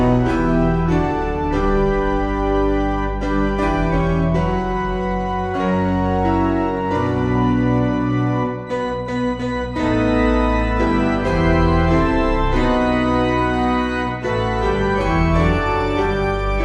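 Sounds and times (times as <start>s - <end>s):
organ piano: 0.0s - 16.6s.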